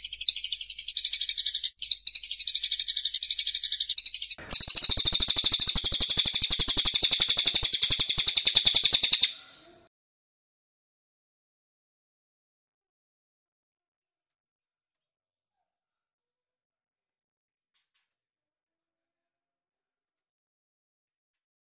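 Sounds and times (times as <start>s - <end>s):
bird song of high sharp chirps: 0.0s - 9.8s.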